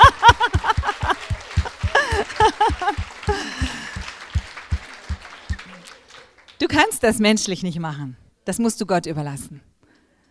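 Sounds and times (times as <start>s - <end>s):
laughter: 0.0s - 6.2s
audience applause: 0.0s - 6.8s
speech: 7.0s - 9.7s.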